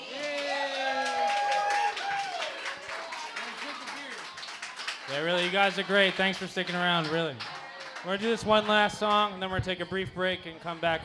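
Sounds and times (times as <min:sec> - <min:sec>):
audience applause: 0:00.0 - 0:09.6
people cheering: 0:00.0 - 0:11.0
speech: 0:05.1 - 0:11.0.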